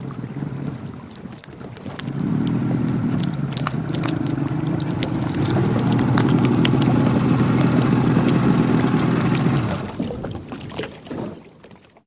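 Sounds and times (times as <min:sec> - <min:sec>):
150 hp Mercury boat engine pulling up and shutting off: 0:00.0 - 0:12.0.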